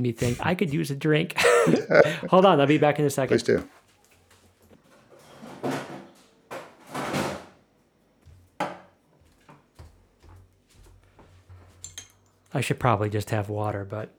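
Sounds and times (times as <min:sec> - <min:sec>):
speech: 0:00.0 - 0:03.8, 0:12.6 - 0:14.1
laughter: 0:01.4 - 0:03.7
fridge door opening and closing: 0:05.2 - 0:07.6.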